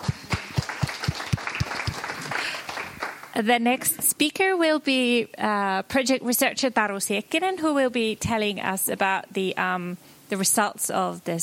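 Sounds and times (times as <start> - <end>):
round of applause: 0.0 - 3.4
speech: 3.4 - 11.4.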